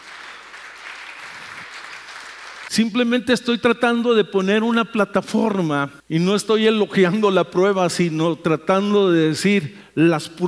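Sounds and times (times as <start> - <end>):
audience applause: 0.0 - 2.7
speech: 2.7 - 10.4.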